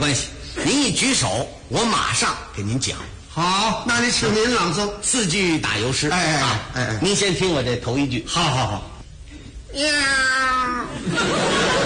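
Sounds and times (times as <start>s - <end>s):
speech: 0.0s - 8.9s, 9.7s - 11.8s
man imitating a screechy cat meow: 9.7s - 10.9s
laughter: 10.9s - 11.8s.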